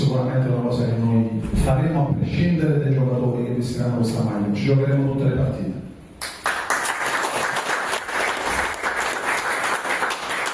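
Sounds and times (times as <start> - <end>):
speech: 0.2 - 0.9, 1.7 - 5.8
audience applause: 6.4 - 10.5.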